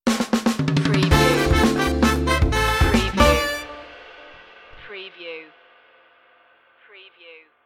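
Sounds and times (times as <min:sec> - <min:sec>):
high funk music stinger: 0:00.1 - 0:04.2.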